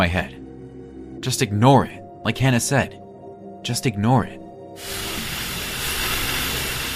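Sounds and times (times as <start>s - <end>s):
speech: 0.0s - 0.4s, 1.2s - 3.0s, 3.6s - 5.1s
static hiss from drive-thru speakers: 4.8s - 6.9s.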